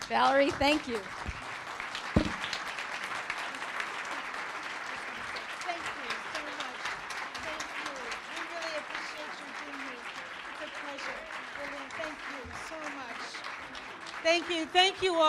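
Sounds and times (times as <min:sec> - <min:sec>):
standing ovation applause from a large crowd: 0:00.0 - 0:15.2
speech: 0:00.1 - 0:01.3, 0:14.3 - 0:15.2.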